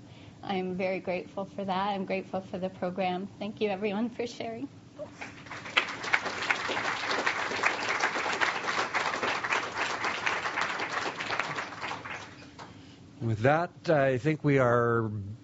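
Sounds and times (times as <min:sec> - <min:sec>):
speech: 0:00.4 - 0:05.4, 0:13.2 - 0:15.4
audience applause: 0:05.1 - 0:12.7.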